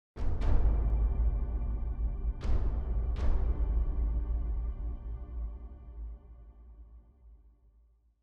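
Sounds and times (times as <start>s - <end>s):
big drums: 0.2s - 5.3s.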